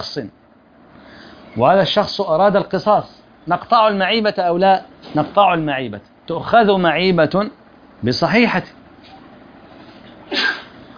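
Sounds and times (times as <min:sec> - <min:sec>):
speech: 0:00.0 - 0:00.4, 0:01.5 - 0:08.8
person sneezing at an Islamic jurisprudence lesson: 0:10.3 - 0:10.9.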